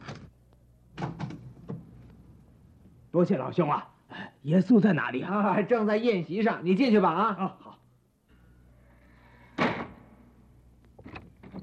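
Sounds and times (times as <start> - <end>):
door being opened: 0.0 - 0.3, 0.9 - 2.2, 11.0 - 11.6
speech: 3.1 - 7.6.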